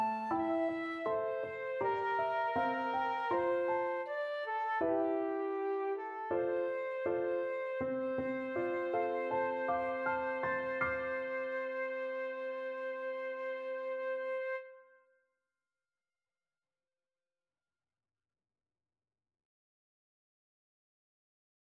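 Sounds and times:
flute playing a folk tune: 0.0 - 15.0.

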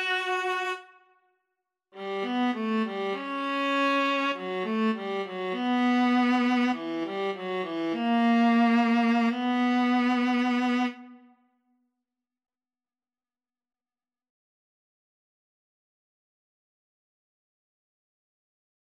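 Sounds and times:
viola duet: 0.0 - 0.9, 2.0 - 11.2.

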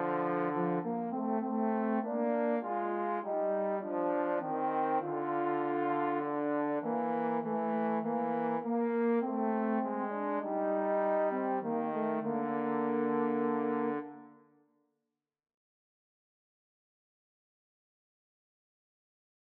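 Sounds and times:
trombone trio: 0.0 - 14.2.

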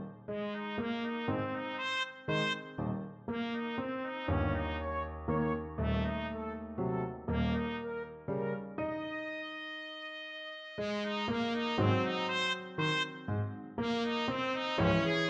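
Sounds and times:
slow waltz on trumpet: 0.5 - 15.2.

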